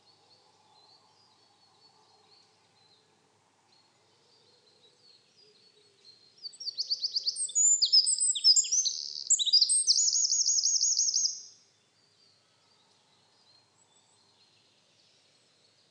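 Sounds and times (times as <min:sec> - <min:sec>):
Eurasian wren Troglodytes troglodytes singing: 0:06.4 - 0:11.6.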